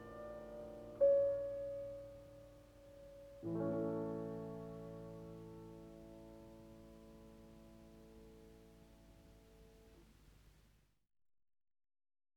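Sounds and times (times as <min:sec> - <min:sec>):
piano etude in A minor: 0:00.0 - 0:09.9.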